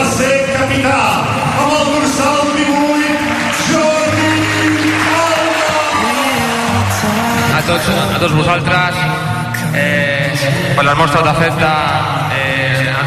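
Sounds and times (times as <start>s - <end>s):
stadium crowd applauding: 0.0s - 9.2s
speech: 7.7s - 9.2s, 9.8s - 12.3s.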